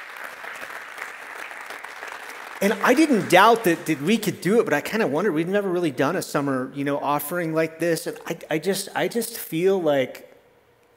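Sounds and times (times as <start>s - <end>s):
audience applause at a church gathering: 0.0s - 4.6s
speech: 2.6s - 10.3s.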